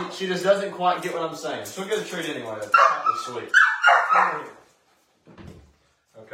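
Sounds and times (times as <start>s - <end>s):
speech: 0.2s - 4.6s
dog barking on command: 2.7s - 4.6s.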